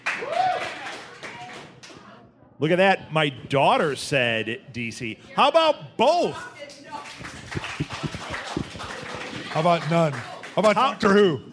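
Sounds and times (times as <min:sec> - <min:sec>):
audience clapping in a poll during a pop culture show: 0:00.0 - 0:02.0, 0:06.9 - 0:10.9
speech: 0:02.6 - 0:07.2, 0:09.6 - 0:11.5.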